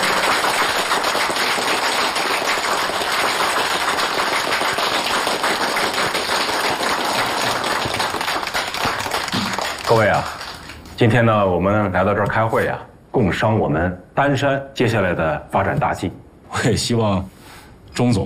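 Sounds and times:
audience applause: 0:00.0 - 0:10.9
speech: 0:11.0 - 0:17.4, 0:18.0 - 0:18.2.

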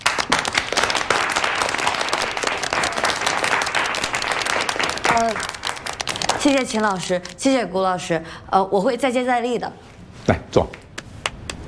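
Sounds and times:
audience applause: 0:00.0 - 0:07.0
speech: 0:06.4 - 0:10.8.

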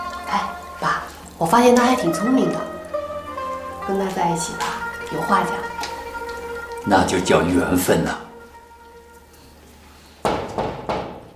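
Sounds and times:
speech: 0:01.4 - 0:02.7, 0:03.9 - 0:05.7, 0:06.8 - 0:08.2
knocking on a door: 0:10.2 - 0:11.3.

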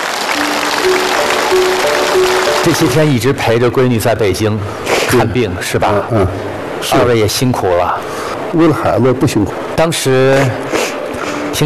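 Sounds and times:
audience applause welcoming guests on stage: 0:00.0 - 0:03.2
speech: 0:00.8 - 0:10.8.

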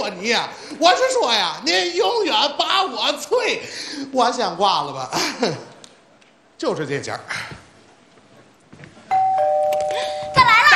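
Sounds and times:
speech: 0:00.2 - 0:05.7, 0:06.6 - 0:07.6
electronic doorbell chime: 0:09.1 - 0:10.7.

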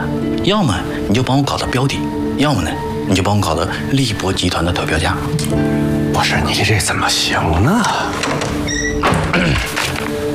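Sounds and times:
speech: 0:00.4 - 0:08.6
door opening as someone enters: 0:07.6 - 0:10.3.

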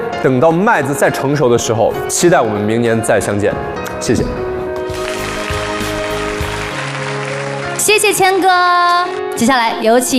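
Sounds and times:
speech: 0:00.2 - 0:04.5, 0:07.9 - 0:10.1
audience applause: 0:04.9 - 0:08.8.

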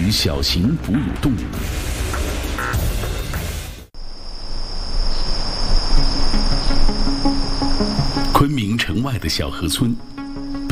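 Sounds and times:
night-time background: 0:00.0 - 0:10.7
rustling outdoor ambience: 0:00.0 - 0:10.7
speech: 0:00.1 - 0:02.0, 0:08.4 - 0:10.7
cricket trill: 0:04.0 - 0:10.7.

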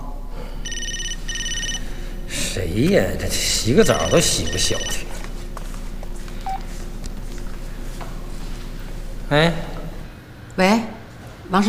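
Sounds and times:
low hum: 0:00.0 - 0:11.6
telephone ringing: 0:00.6 - 0:02.1, 0:03.8 - 0:05.1
speech: 0:02.6 - 0:05.1, 0:09.3 - 0:09.7.

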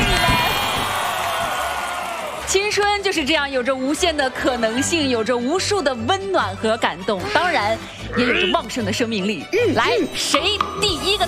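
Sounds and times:
audience applause at a televised youth event: 0:00.0 - 0:02.9
speech: 0:02.5 - 0:11.2.

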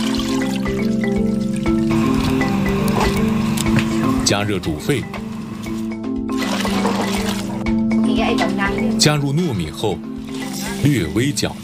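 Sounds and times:
maple-leaf steeping juice strained and poured, gurgling and splashing: 0:00.0 - 0:04.2, 0:05.0 - 0:07.7, 0:09.4 - 0:11.6
low steady hum: 0:01.6 - 0:09.0
speech: 0:04.3 - 0:05.2, 0:08.7 - 0:10.1, 0:10.8 - 0:11.6.

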